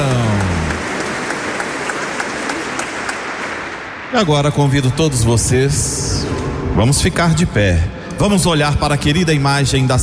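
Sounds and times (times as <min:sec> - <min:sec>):
audience applause: 0:00.0 - 0:04.0
speech: 0:04.1 - 0:10.0.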